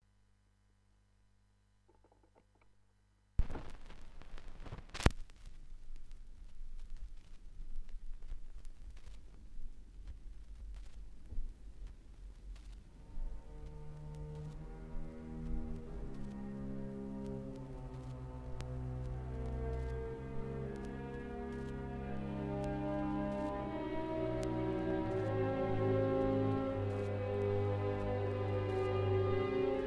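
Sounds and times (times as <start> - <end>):
string orchestra: 13.1 - 29.8.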